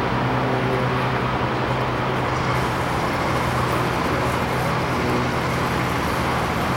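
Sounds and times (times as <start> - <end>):
arc welder generator droning: 0.1 - 6.7
bright hiss: 2.2 - 6.7.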